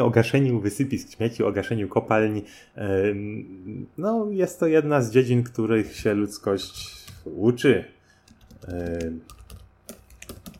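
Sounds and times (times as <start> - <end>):
speech: 0.0 - 8.0, 8.6 - 9.4
computer keyboard typing a Skype password: 8.2 - 10.5.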